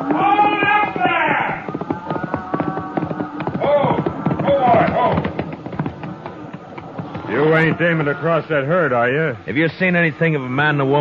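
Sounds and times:
horse hoofbeats of a rider charging on a cattle trail in a radio western: 0.0s - 8.6s
speech: 7.5s - 11.0s.

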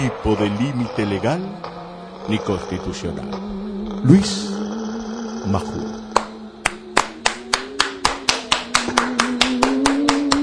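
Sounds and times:
speech: 0.0s - 1.7s, 2.3s - 4.6s, 5.4s - 6.0s
applause, hands clapping: 6.1s - 10.4s.

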